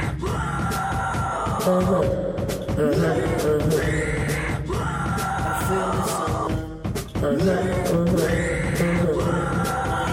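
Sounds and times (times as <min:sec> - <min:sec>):
harsh strained screamed vocals: 0:00.0 - 0:06.7, 0:07.4 - 0:10.1
loud dense music track: 0:00.0 - 0:10.1.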